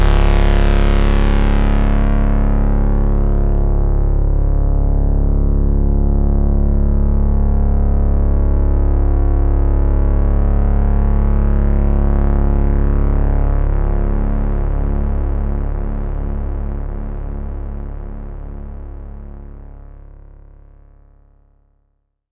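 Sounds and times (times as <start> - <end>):
Pro One synthesizer bass: 0.0 - 20.3.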